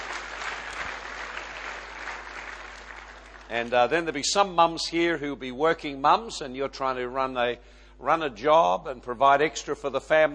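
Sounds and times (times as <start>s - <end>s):
audience applause: 0.0s - 3.5s
speech: 3.5s - 10.3s.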